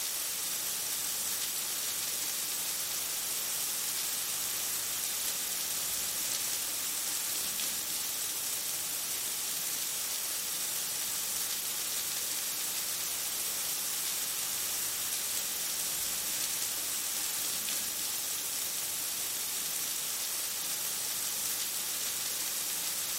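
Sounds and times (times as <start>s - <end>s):
outdoor camping public pool shower turning on: 1.0s - 23.1s.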